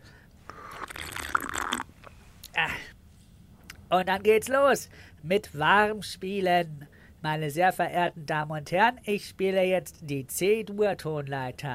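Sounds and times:
biting and chewing cheesecake: 0.5s - 2.1s
swallowing: 0.5s - 2.6s
speech: 3.9s - 11.7s.

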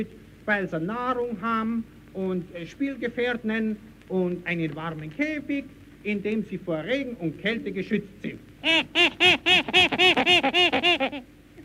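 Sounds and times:
speech: 0.0s - 11.3s
small monkey chattering: 8.6s - 11.3s.

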